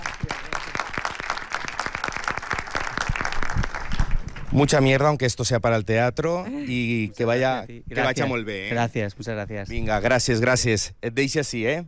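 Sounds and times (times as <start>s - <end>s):
audience applause: 0.0s - 4.5s
speech: 4.6s - 11.8s.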